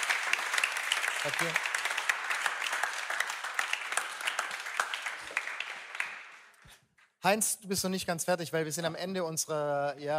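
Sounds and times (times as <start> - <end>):
crowd applauding: 0.0 - 6.6
speech: 1.2 - 1.7, 7.2 - 10.1.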